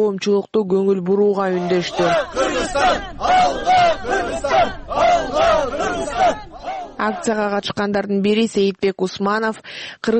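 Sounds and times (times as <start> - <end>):
speech: 0.0 - 10.1
protesters chanting at a rally outside the Tajik embassy in Washington: 1.4 - 7.6.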